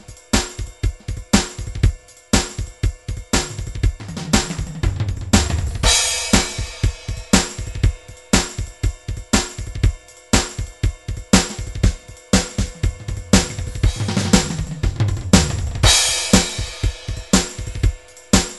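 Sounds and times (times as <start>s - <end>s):
rock drum grooves from MIDI loops: 0.0s - 18.5s.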